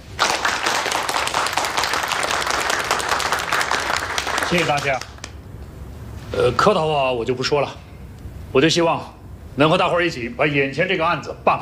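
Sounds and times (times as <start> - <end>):
group applause welcoming a political commissar: 0.0 - 5.4
speech: 4.5 - 5.1, 6.3 - 7.8, 8.5 - 11.6.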